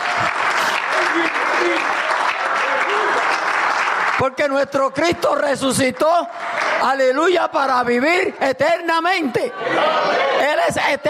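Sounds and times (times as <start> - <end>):
audience applause: 0.0 - 7.7
speech: 1.2 - 2.1, 4.2 - 11.0.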